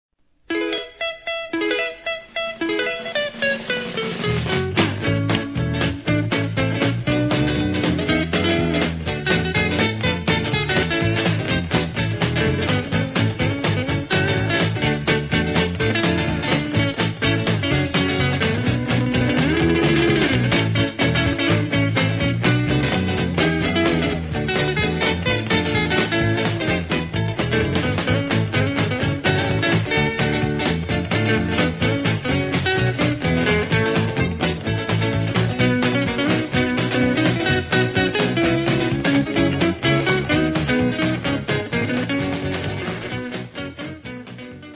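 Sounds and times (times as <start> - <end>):
instrumental medley: 0.5 - 44.7.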